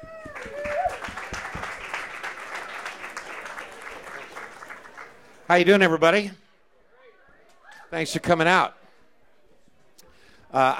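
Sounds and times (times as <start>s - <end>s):
vocal whoop: 0.0s - 1.0s
audience applause welcoming a radio host moderating an event: 0.0s - 5.4s
speech: 5.5s - 6.4s, 7.9s - 8.8s, 10.5s - 10.7s.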